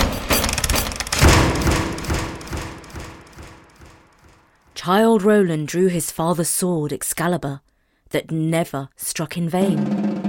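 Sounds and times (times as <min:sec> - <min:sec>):
thudding, splintering, rattling debris: 0:00.0 - 0:03.9
double doors being smashed through: 0:01.2 - 0:03.8
speech: 0:04.8 - 0:10.1.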